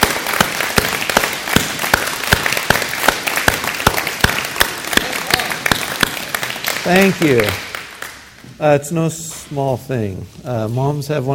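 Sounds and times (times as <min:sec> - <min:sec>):
audience applause: 0:00.0 - 0:08.3
one set of loud sharp claps in a regular rhythm: 0:00.0 - 0:08.6
speech: 0:06.8 - 0:07.6, 0:08.6 - 0:11.3.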